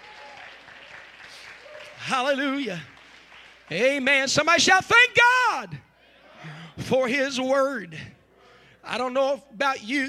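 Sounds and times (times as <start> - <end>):
audience clapping: 0.0 - 4.4
speech: 2.1 - 2.9, 3.7 - 5.9, 6.9 - 8.2, 8.8 - 10.0.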